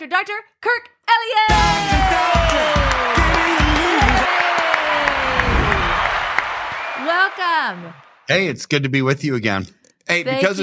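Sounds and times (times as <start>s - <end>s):
speech: 0.0s - 2.8s, 7.0s - 10.6s
crowd whoops and cheering: 1.5s - 8.1s
crowd applause as a guest is welcomed: 1.7s - 8.5s.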